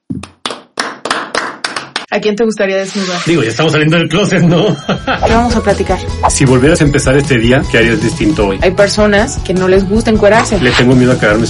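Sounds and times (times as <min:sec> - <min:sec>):
applause, hands clapping: 0:00.2 - 0:02.1
speech: 0:02.1 - 0:11.4
laughter: 0:04.3 - 0:05.4.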